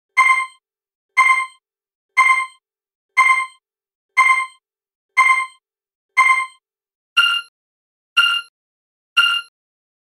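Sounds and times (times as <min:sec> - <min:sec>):
countdown timer: 0:00.1 - 0:00.6, 0:01.2 - 0:01.6, 0:02.2 - 0:02.6, 0:03.2 - 0:03.6, 0:04.2 - 0:04.6, 0:05.2 - 0:05.6, 0:06.2 - 0:06.6, 0:07.2 - 0:07.5, 0:08.2 - 0:08.5, 0:09.2 - 0:09.5.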